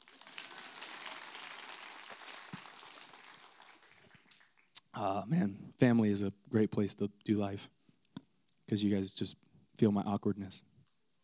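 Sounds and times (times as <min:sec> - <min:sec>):
audience clapping: 0:00.0 - 0:04.8
speech: 0:05.0 - 0:07.8, 0:08.7 - 0:10.7.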